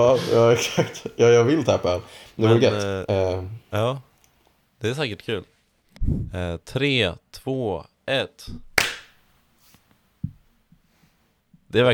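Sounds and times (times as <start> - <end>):
laughter: 0.0 - 2.1
speech: 0.0 - 4.1, 4.8 - 8.7, 11.7 - 11.9
hand clap: 8.6 - 9.2.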